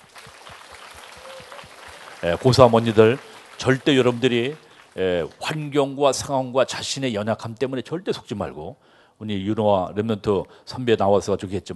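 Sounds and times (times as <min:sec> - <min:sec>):
crowd applauding: 0:00.0 - 0:06.3
speech: 0:02.2 - 0:11.7.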